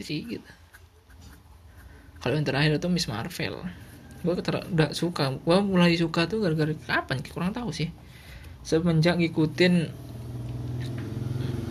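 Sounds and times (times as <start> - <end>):
speech: 0.0 - 0.6, 2.2 - 8.0, 8.6 - 10.1
motorbike engine rumbling: 9.2 - 11.6.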